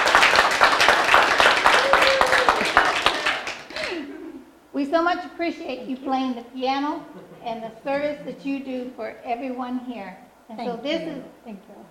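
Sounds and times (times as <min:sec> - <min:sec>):
audience applause: 0:00.0 - 0:04.0
speech: 0:04.9 - 0:11.9.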